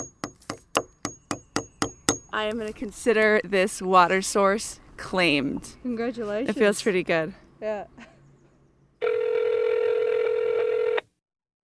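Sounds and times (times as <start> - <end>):
speech: 2.4 - 8.0
telephone line tone: 9.0 - 11.0.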